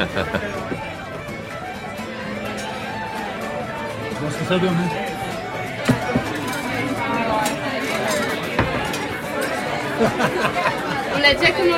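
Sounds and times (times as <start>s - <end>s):
laughter: 0.0s - 1.0s, 9.6s - 11.7s
busy Irish pub crowd chatter: 0.0s - 11.7s
speech: 4.4s - 5.0s, 10.0s - 11.7s
glasses and dishes clinking: 4.9s - 11.4s.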